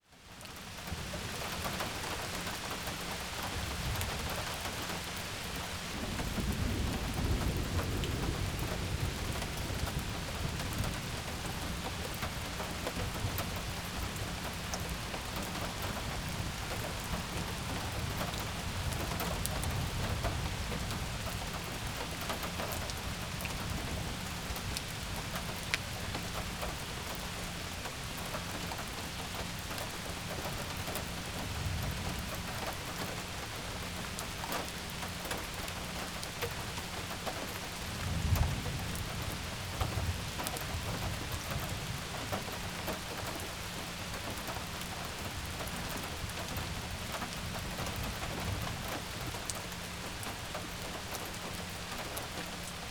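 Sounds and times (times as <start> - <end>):
rain: 0.0 - 52.9.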